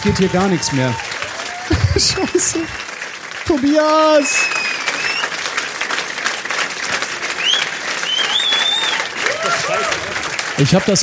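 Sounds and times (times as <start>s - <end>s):
speech: 0.0s - 1.2s, 2.0s - 2.9s, 3.5s - 4.7s, 9.8s - 11.0s
whistles and cheers: 0.0s - 1.7s, 4.0s - 5.5s, 7.3s - 10.6s
audience applause: 0.0s - 11.0s
laughter: 1.5s - 2.8s.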